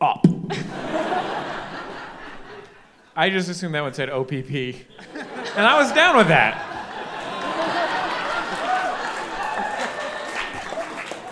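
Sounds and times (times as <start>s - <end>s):
laughter: 0.5s - 3.0s, 4.9s - 11.3s
speech: 3.2s - 6.7s
audience applause: 5.6s - 11.3s.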